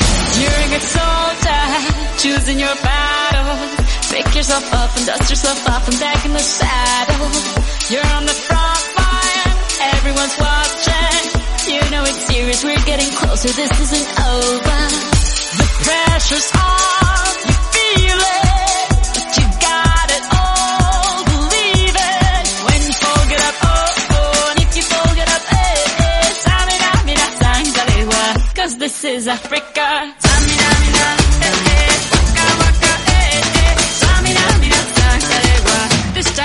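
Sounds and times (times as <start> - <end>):
Afro fusion music: 0.0 - 28.6, 30.2 - 36.4.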